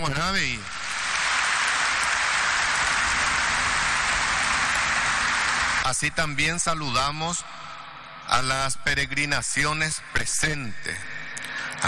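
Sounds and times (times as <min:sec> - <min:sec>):
speech: 0:00.0 - 0:00.8, 0:05.8 - 0:07.6, 0:08.3 - 0:11.1
applause: 0:00.2 - 0:06.2.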